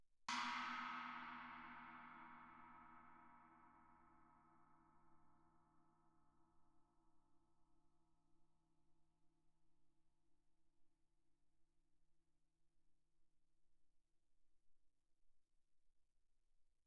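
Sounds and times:
Chinese suspended cymbal struck with stick shoulder: 0:00.3 - 0:05.4.

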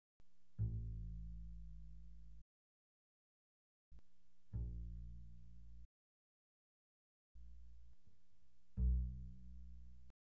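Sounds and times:
very soft double bass pizzicato on the A string: 0:00.6 - 0:02.4, 0:04.5 - 0:05.9, 0:08.7 - 0:10.1.

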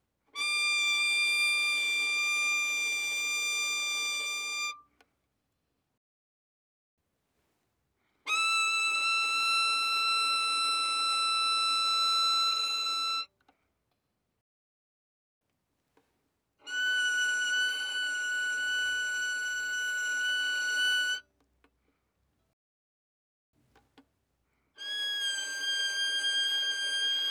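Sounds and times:
violin arco fortissimo on A string: 0:00.4 - 0:04.8, 0:08.3 - 0:13.3, 0:16.7 - 0:21.2, 0:24.8 - 0:27.2.

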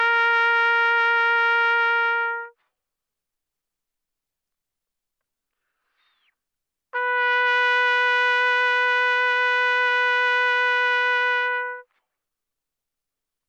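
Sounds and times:
trumpet vibrato at mezzo-forte from C4 to B4: 0:00.0 - 0:02.6, 0:07.0 - 0:11.9.

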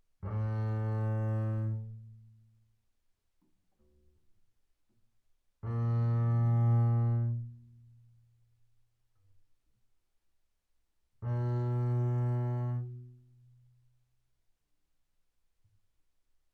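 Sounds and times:
double bass bowed arco fortissimo on A string: 0:00.2 - 0:02.2, 0:05.6 - 0:07.9, 0:11.2 - 0:13.2.

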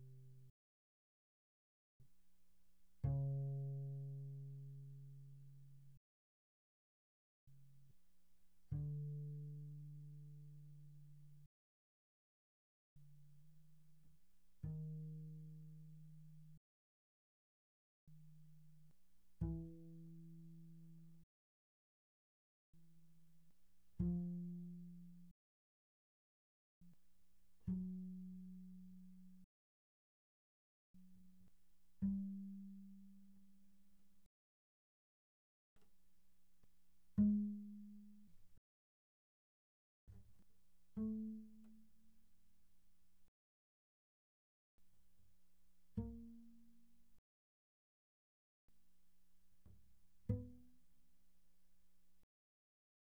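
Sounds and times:
very soft double bass pizzicato on the G string: 0:03.0 - 0:06.0, 0:08.6 - 0:11.5, 0:13.0 - 0:16.6, 0:18.1 - 0:21.2, 0:22.8 - 0:25.3, 0:27.6 - 0:29.4, 0:32.0 - 0:33.8, 0:37.1 - 0:38.6, 0:50.2 - 0:50.7.

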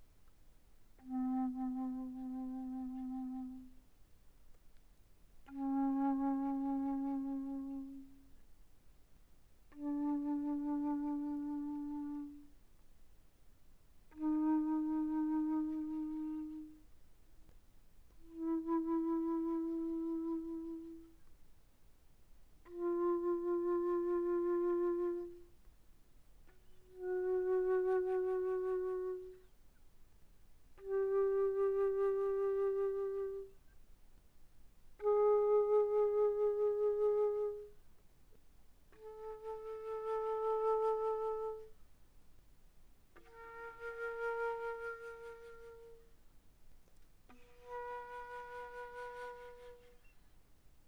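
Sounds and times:
soft alto flute notes: 0:00.9 - 0:03.9, 0:05.4 - 0:08.4, 0:09.7 - 0:12.6, 0:14.0 - 0:17.0, 0:18.1 - 0:21.3, 0:22.6 - 0:25.6, 0:26.4 - 0:29.6, 0:30.8 - 0:33.7, 0:34.9 - 0:37.8, 0:38.9 - 0:41.8, 0:43.2 - 0:46.2, 0:47.3 - 0:50.4.

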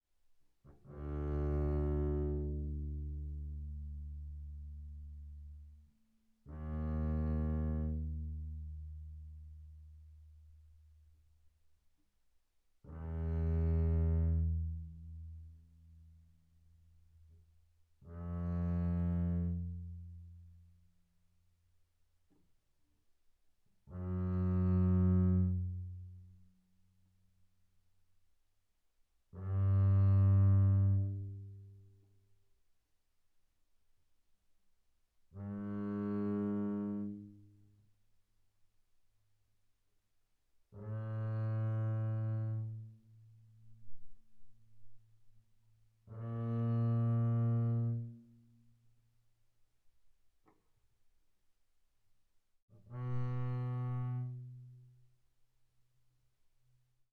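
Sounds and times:
double bass bowed arco on the D string mezzo forte: 0:00.7 - 0:05.8, 0:06.4 - 0:10.5, 0:12.9 - 0:16.3, 0:18.0 - 0:20.8, 0:23.9 - 0:26.5, 0:29.4 - 0:31.9, 0:35.4 - 0:37.6, 0:40.8 - 0:45.0, 0:46.0 - 0:48.7, 0:52.8 - 0:55.1.

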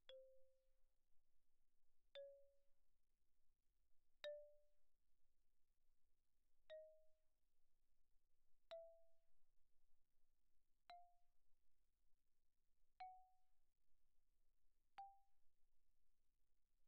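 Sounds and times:
rosewood xylophone played softly: 0:00.0 - 0:00.6, 0:02.1 - 0:02.6, 0:04.2 - 0:04.7, 0:06.6 - 0:07.2, 0:08.6 - 0:09.2, 0:13.0 - 0:13.5, 0:15.0 - 0:15.4.

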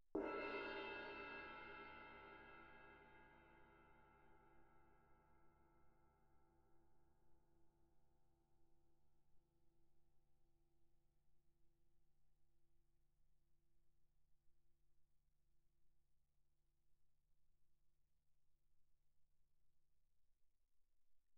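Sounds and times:
suspended cymbal crash struck with mallet mezzo forte: 0:00.2 - 0:03.6.

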